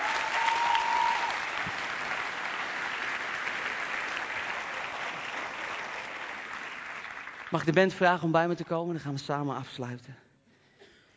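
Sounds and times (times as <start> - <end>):
audience applause: 0.0 - 7.8
speech: 7.5 - 10.2.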